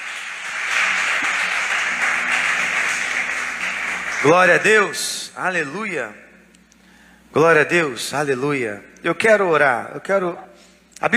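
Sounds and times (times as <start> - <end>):
audience applauding: 0.0 - 5.0
speech: 4.2 - 6.3, 7.3 - 11.1.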